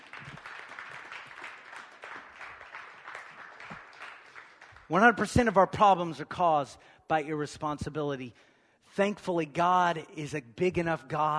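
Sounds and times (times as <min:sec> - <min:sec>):
audience clapping: 0:00.0 - 0:05.4
speech: 0:04.9 - 0:11.3.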